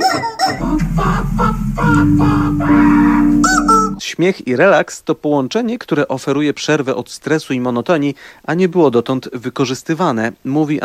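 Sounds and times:
instrument of rubber chickens squeaking: 0.0 - 4.0
speech: 0.7 - 3.5, 4.2 - 10.8.

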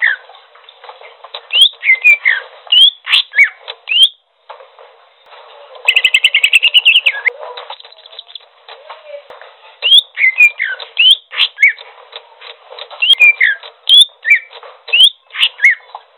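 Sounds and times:
bird singing trills: 1.5 - 4.2, 5.9 - 8.4, 9.8 - 11.8, 13.0 - 15.9.

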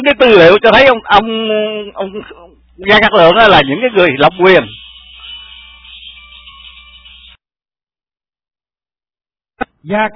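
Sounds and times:
speech: 0.0 - 4.9, 9.8 - 10.1
incoming-call ringtone on a phone: 3.1 - 7.4.

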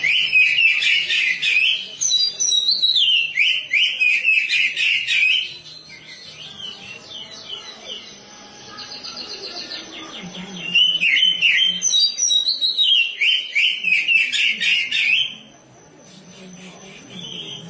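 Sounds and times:
Oriental magpie-robin singing warbled whistles and buzzy trills: 0.0 - 8.1, 9.2 - 15.4.

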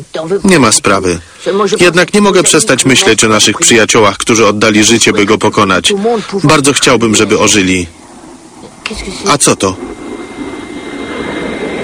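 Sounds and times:
speech: 0.0 - 8.0, 8.9 - 10.0
airplane engine approaching: 0.0 - 11.8.

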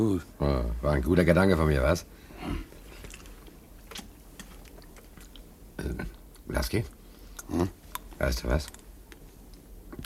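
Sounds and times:
speech: 0.0 - 2.7, 5.8 - 8.8
wet chewing and biting on jam with seeds: 2.6 - 6.4.

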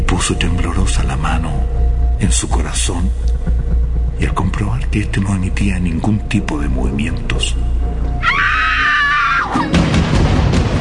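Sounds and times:
dense rumbling noise: 0.0 - 8.0
speech: 0.2 - 8.9
person giving a heart-rending scream: 8.2 - 9.8.

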